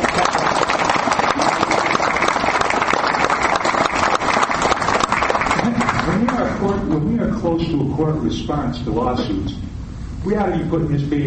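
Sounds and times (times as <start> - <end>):
round of applause: 0.0 - 6.6
speech: 7.6 - 11.2.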